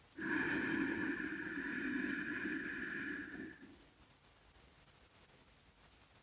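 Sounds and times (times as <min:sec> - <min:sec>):
deep breath in: 0:00.0 - 0:03.8.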